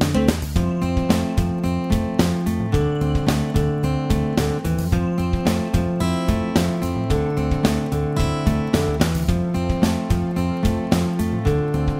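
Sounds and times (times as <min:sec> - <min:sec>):
ambient guitar: 0:00.0 - 0:11.9.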